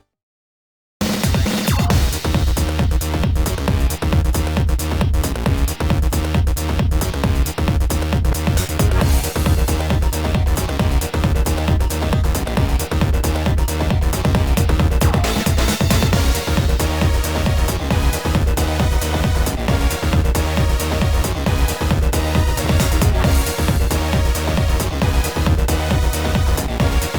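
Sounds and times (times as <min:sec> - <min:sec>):
duel music: 0:01.0 - 0:27.1.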